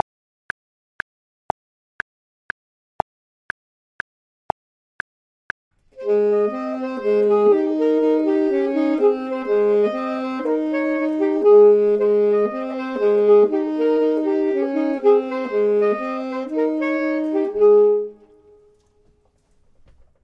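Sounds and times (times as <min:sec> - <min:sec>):
saxophone: 0:06.0 - 0:19.0
clarinet: 0:06.0 - 0:19.3.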